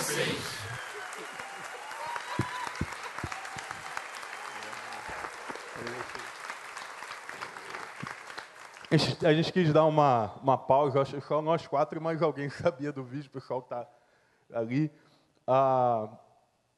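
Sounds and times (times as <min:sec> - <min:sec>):
audience applauding: 0:00.0 - 0:09.4
speech: 0:08.9 - 0:16.2.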